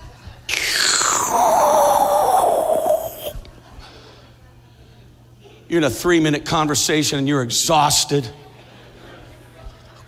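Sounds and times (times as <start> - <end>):
person imitating a loud sucking sound: 0.5 - 3.4
speech: 1.3 - 1.6, 5.7 - 8.5.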